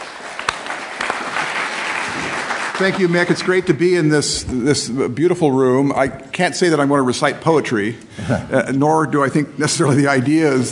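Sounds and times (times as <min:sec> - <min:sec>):
lecture audience applause welcoming two speakers: 0:00.0 - 0:03.8
speech: 0:02.8 - 0:10.7.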